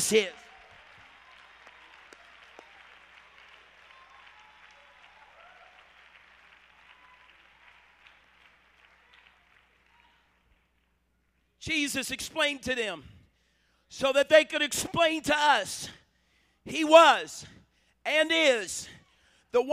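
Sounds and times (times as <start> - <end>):
audience clapping: 0.0 - 11.0
speech: 0.1 - 0.4, 11.6 - 13.2, 13.9 - 16.0, 16.7 - 19.7.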